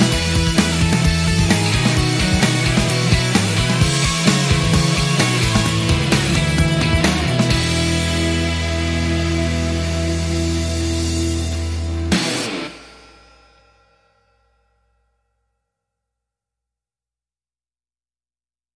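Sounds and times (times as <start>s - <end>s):
band music mix without rhythm guitar: 0.0s - 13.5s.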